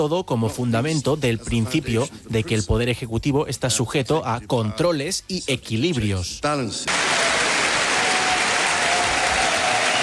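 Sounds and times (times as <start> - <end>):
speech: 0.0 - 7.4
audience applause: 6.9 - 10.0.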